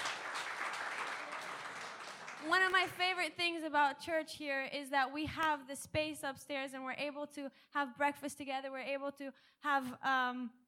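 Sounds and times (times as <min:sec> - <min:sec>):
audience applause: 0:00.0 - 0:03.0
speech: 0:02.4 - 0:10.6.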